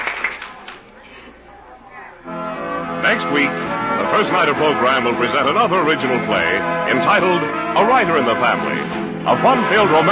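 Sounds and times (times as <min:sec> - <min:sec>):
theater audience applause: 0:00.0 - 0:00.8
speech: 0:03.3 - 0:03.6, 0:04.2 - 0:10.1.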